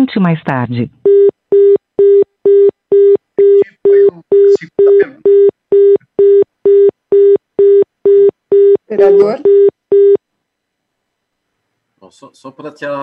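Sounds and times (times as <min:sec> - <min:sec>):
speech: 0:00.0 - 0:01.3, 0:12.5 - 0:13.0
telephone out-of-service signal beeps: 0:01.1 - 0:10.2
voices: 0:03.6 - 0:05.2.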